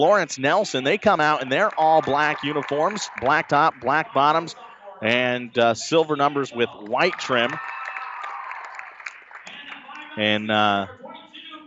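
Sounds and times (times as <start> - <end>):
speech: 0.0 - 7.7, 10.2 - 11.0
basketball crowd applauding and cheering: 1.2 - 4.5, 6.3 - 10.4.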